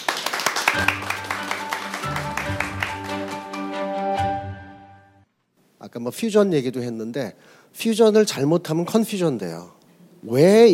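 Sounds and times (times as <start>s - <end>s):
audience applause: 0.0s - 3.8s
speech: 0.7s - 1.2s, 6.0s - 10.7s.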